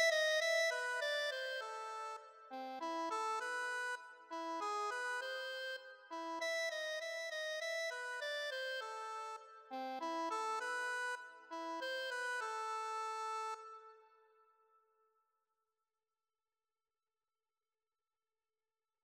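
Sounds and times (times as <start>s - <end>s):
accordion playing a classical piano piece: 0.0s - 14.0s.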